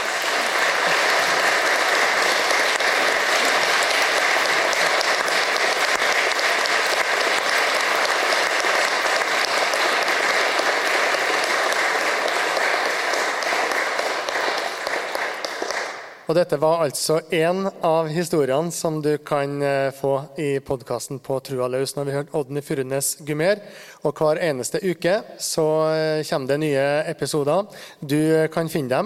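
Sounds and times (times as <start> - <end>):
audience applause: 0.0 - 16.2
speech: 16.3 - 29.0.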